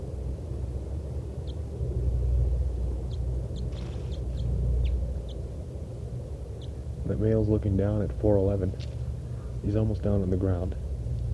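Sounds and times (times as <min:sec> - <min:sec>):
low rumble: 0:00.0 - 0:11.3
wild bird flight calls: 0:03.0 - 0:05.5, 0:06.5 - 0:06.8
speech: 0:07.1 - 0:09.0, 0:09.6 - 0:10.8.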